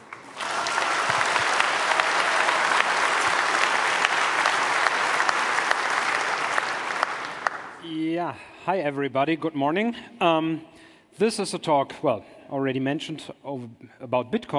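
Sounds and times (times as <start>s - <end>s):
audience applause: 0.0s - 7.8s
speech: 8.3s - 14.5s.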